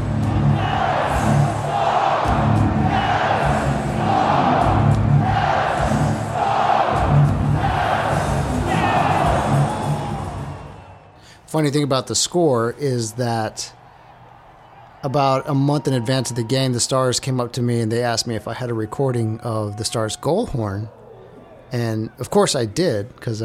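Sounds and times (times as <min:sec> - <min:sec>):
huge hockey crowd roaring after a goal: 0:00.0 - 0:11.2, 0:12.2 - 0:17.6, 0:18.2 - 0:22.9
speech: 0:11.6 - 0:13.8, 0:15.0 - 0:21.0, 0:21.7 - 0:23.4.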